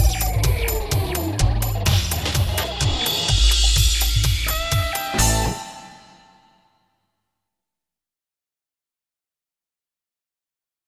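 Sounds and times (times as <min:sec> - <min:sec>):
intro music: 0:00.0 - 0:06.7.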